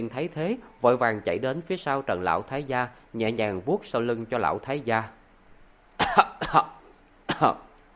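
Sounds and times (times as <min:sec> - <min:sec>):
speech: 0:00.0 - 0:05.2, 0:06.1 - 0:06.8, 0:07.4 - 0:07.7
elderly man coughing dryly: 0:06.0 - 0:07.7.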